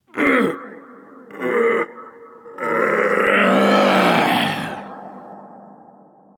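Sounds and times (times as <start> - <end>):
person grunting while lifting: 0.1 - 5.2.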